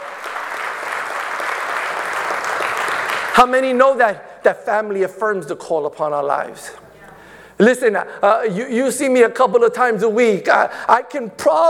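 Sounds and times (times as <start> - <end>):
audience hand clapping: 0.0 - 3.8
speech: 3.4 - 6.8, 7.6 - 11.6.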